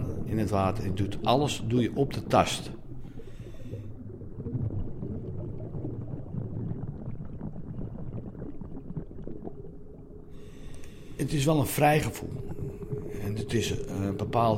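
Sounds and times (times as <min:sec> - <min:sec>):
underwater diver's bubble trails: 0:00.0 - 0:14.5
speech: 0:00.3 - 0:02.8, 0:11.2 - 0:12.4, 0:13.2 - 0:14.5.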